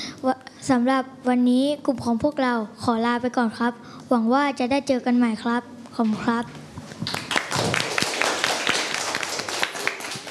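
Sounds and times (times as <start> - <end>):
speech: 0.2 - 6.6
classroom of people clapping their hands: 7.0 - 10.2.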